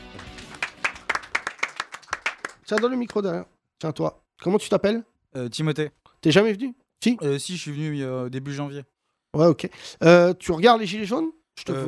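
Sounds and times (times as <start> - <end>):
audience applauding: 0.0 - 3.2
speech: 2.7 - 11.8.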